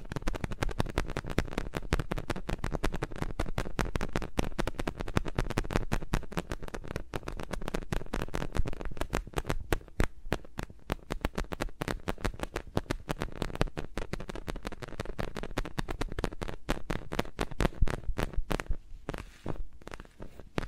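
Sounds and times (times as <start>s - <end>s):
fingers rubbing and tapping around microphones: 0.0s - 20.6s.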